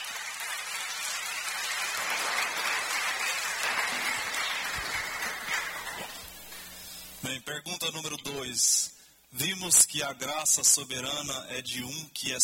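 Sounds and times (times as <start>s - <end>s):
crowd clapping: 0.0s - 6.7s
speech: 7.3s - 12.4s.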